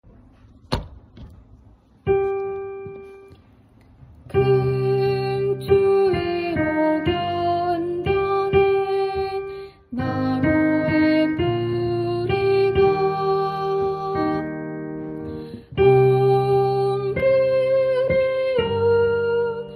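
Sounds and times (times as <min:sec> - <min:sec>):
soprano singing: 0:04.3 - 0:15.1, 0:15.7 - 0:19.7.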